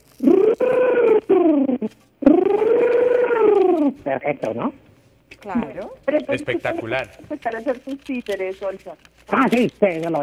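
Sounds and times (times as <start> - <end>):
voice imitating a little dog with whiny yelps and howls: 0.2 - 4.7
speech: 4.1 - 10.2.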